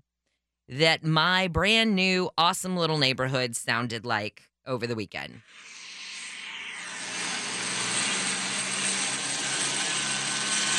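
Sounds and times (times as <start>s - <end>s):
speech: 0.7s - 5.8s
police helicopter flying overhead: 5.4s - 10.7s.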